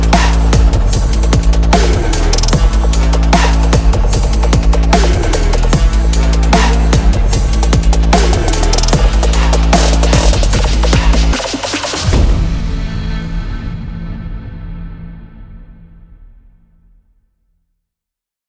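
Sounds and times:
aggressive sport trap music: 0.0s - 13.4s.

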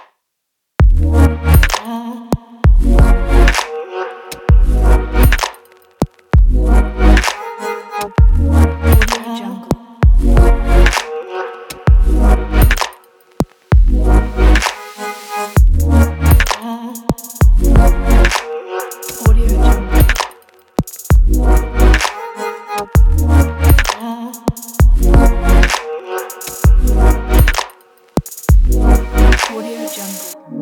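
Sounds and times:
abstract vlog beat: 0.8s - 1.9s, 2.7s - 3.7s, 4.4s - 7.4s, 8.1s - 9.3s, 10.0s - 11.1s, 11.8s - 14.8s, 15.6s - 22.2s, 22.9s - 30.4s.

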